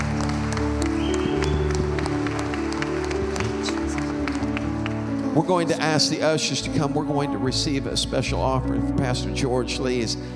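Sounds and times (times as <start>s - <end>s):
audience clapping in praise: 0.0s - 5.9s
speech: 5.4s - 10.3s.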